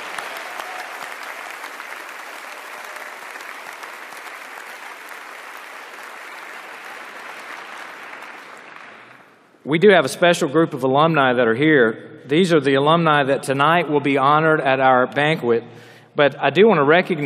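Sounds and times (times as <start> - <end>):
audience applause for trustees: 0.0 - 9.5
speech: 9.6 - 17.2.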